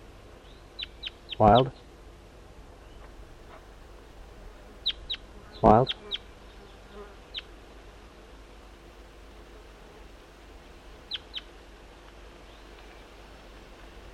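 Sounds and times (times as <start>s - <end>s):
wild juvenile bird calling: 0.4s - 1.9s, 4.8s - 7.6s, 11.0s - 11.5s
speech: 1.4s - 1.8s, 5.6s - 6.0s.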